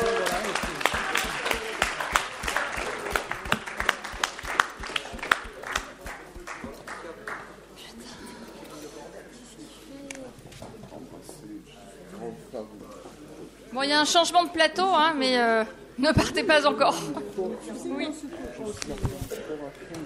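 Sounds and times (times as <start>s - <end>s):
audience applause: 0.0s - 7.5s
murmur of voices: 0.0s - 20.0s
speech: 14.0s - 19.4s.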